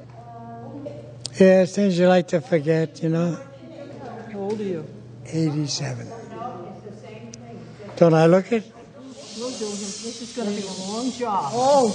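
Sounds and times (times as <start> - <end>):
speech: 1.4 - 3.5, 4.6 - 6.2, 8.0 - 8.8, 9.6 - 11.9
air hissing into a big inflatable monkey decoration: 9.0 - 11.9.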